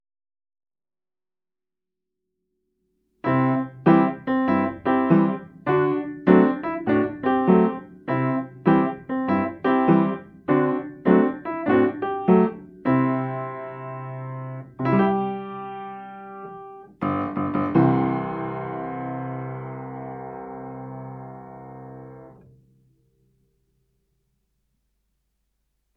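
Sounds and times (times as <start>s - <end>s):
piano theme: 3.2s - 22.9s.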